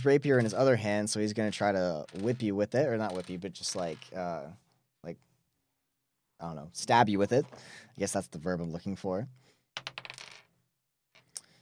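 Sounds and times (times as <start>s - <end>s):
speech: 0.0s - 5.3s, 6.4s - 10.0s
dice rolling on a table: 1.4s - 4.2s, 9.8s - 10.6s.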